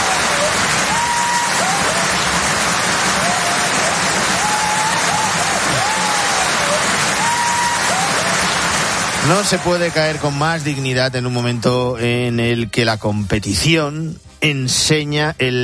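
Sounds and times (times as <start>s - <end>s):
audience applause: 0.0s - 11.0s
speech: 9.3s - 15.6s.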